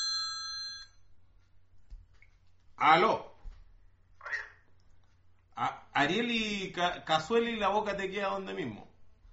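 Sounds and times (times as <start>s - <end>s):
telephone ringing: 0.0s - 1.0s
speech: 2.8s - 3.3s, 5.6s - 8.9s.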